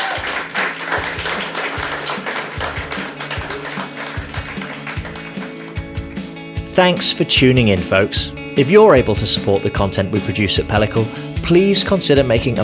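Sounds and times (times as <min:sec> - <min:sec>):
audience applause for panel: 0:00.0 - 0:06.2
speech: 0:06.8 - 0:12.6.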